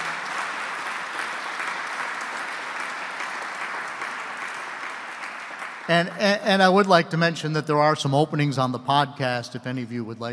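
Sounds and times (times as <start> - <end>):
crowd applauding honorees: 0.0 - 7.0
speech: 5.9 - 10.3.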